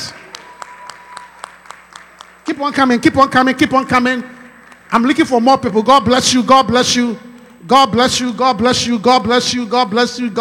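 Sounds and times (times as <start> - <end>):
audience clapping: 0.0 - 3.0, 4.0 - 5.2
speech: 2.5 - 10.3.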